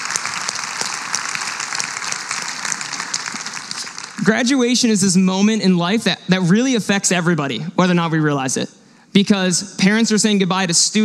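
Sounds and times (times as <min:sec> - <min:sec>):
crowd round of applause: 0:00.0 - 0:04.4
speech: 0:04.2 - 0:11.0.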